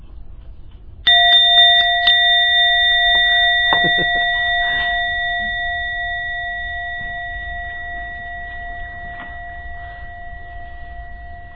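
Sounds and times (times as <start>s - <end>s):
gong ringing: 1.1s - 11.5s.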